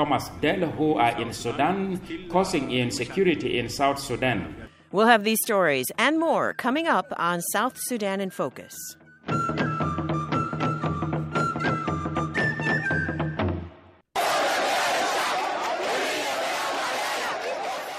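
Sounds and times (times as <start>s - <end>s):
speech: 0.0s - 9.7s
music: 5.9s - 14.0s
thousands of protesters shouting on the streets of Khartoum: 14.2s - 17.9s.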